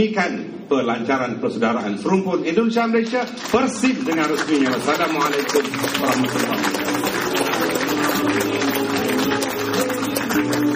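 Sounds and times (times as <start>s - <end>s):
speech: 0.0s - 8.8s
thunderous audience applause: 3.4s - 10.7s.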